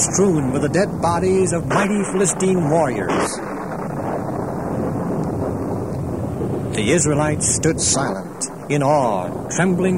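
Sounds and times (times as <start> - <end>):
speech: 0.0 - 3.6, 6.8 - 9.9
storm wind sound effect: 0.0 - 9.9.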